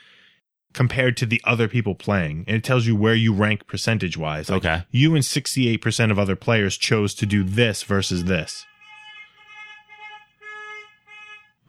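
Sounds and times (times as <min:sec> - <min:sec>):
speech: 0:00.8 - 0:08.7
car horns honking in the street: 0:07.0 - 0:11.6.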